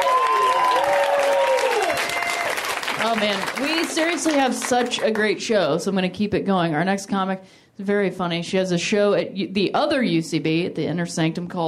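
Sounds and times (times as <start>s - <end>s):
audience applause for a comedian at a comedy show: 0.0s - 5.2s
speech: 3.1s - 11.6s.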